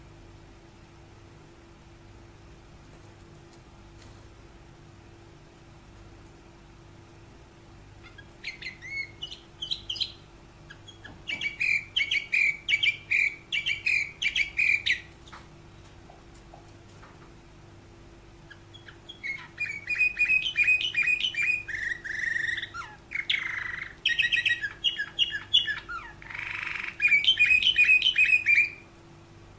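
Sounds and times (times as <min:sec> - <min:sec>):
canary giving sharp chirps: 0:07.9 - 0:15.5, 0:18.4 - 0:29.0.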